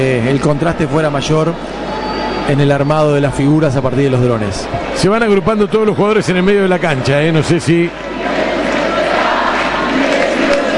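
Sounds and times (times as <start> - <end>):
speech: 0.0 - 8.1
stadium crowd chanting: 7.9 - 10.7.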